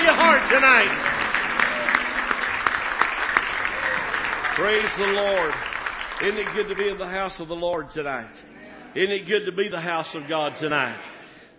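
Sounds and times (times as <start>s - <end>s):
audience clapping hands in praise: 0.0s - 8.3s
speech: 0.4s - 1.2s, 4.6s - 11.1s.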